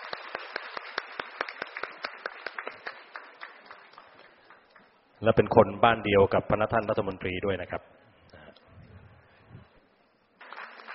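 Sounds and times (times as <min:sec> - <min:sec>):
crowd applause: 0:00.0 - 0:04.7, 0:10.4 - 0:10.9
speech: 0:05.2 - 0:08.0.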